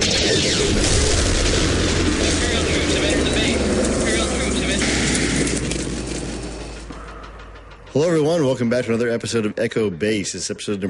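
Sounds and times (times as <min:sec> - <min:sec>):
cannon shot firing: 0:00.0 - 0:07.1
speech: 0:08.3 - 0:10.8.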